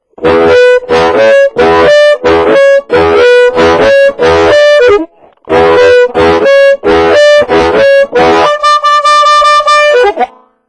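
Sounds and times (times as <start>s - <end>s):
clean harmonica: 0.2s - 10.3s.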